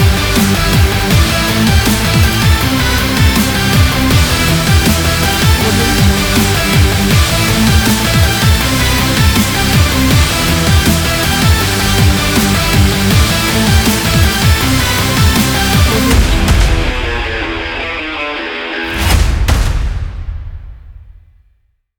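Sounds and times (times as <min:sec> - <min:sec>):
energetic sport rock music: 0:00.0 - 0:19.6.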